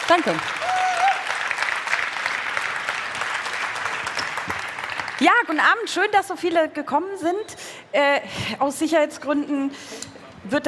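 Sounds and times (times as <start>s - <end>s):
big round of applause: 0.0s - 5.8s
speech: 0.1s - 0.7s, 5.2s - 10.6s.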